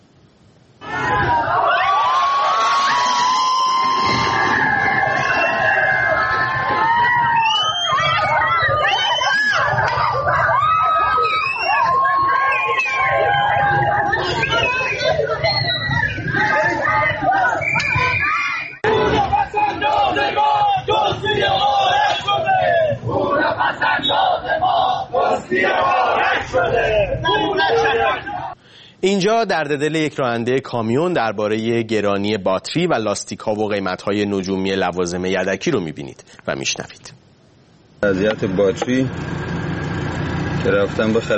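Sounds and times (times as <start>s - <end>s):
protest rally crowd shouting and clashing with police: 0.8s - 28.6s
speech: 29.0s - 37.2s, 38.0s - 39.5s, 40.6s - 41.3s.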